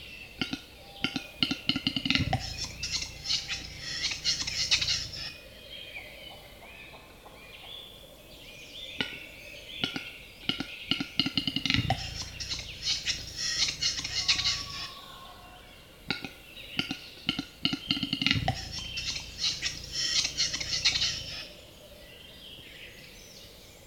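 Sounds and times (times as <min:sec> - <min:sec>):
Western capercaillie display: 0:00.6 - 0:05.3, 0:10.6 - 0:15.2, 0:16.2 - 0:21.5.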